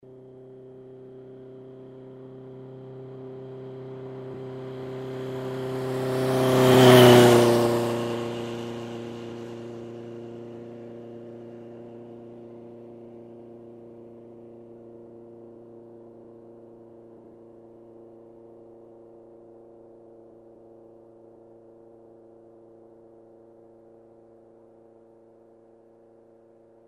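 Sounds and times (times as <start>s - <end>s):
motorcycle passing by: 1.3s - 14.8s.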